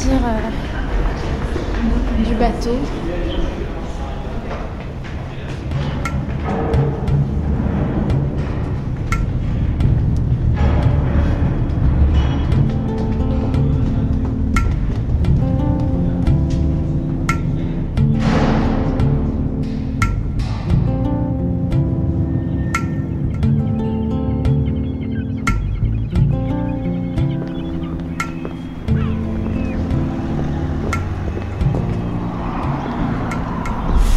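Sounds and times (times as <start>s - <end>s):
passing vehicles: 0.0s - 34.1s
seafront traffic rumble: 0.0s - 34.1s
speech: 2.2s - 3.0s
faint bird calls: 22.3s - 34.1s.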